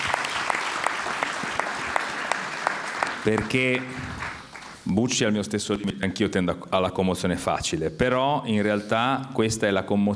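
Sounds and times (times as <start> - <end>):
audience applause: 0.0 - 5.2
speech: 3.2 - 4.2, 4.8 - 10.1.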